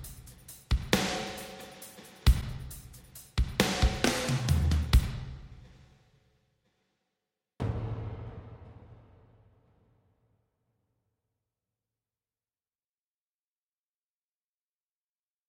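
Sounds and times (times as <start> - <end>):
drum kit playing: 0.0 - 5.4, 7.6 - 9.5.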